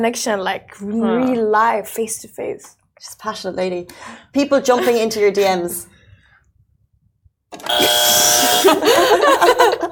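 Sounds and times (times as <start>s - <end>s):
speech: 0.0s - 5.9s
buzzer blaring: 7.6s - 9.2s
laughter: 7.8s - 9.9s.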